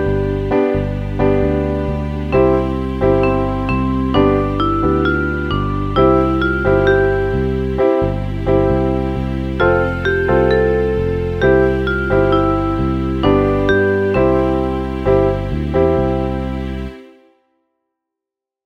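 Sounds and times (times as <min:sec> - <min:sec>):
piano ensemble: 0:00.0 - 0:17.3.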